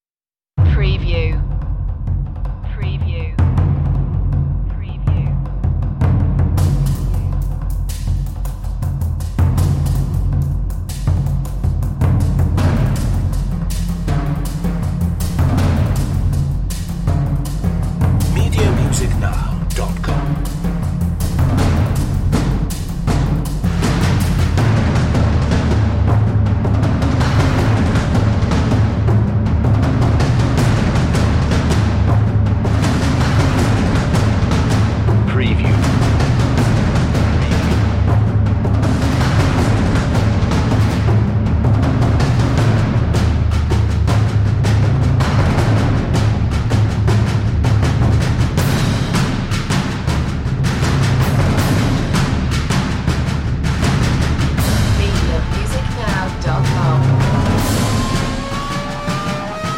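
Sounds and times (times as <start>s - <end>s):
percussion effects: 0.6s - 59.7s.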